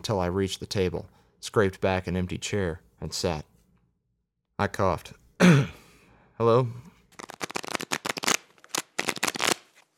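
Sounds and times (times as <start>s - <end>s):
speech: 0.0s - 3.5s, 4.6s - 5.8s, 6.4s - 6.9s
playing cards being dealt: 7.2s - 9.9s.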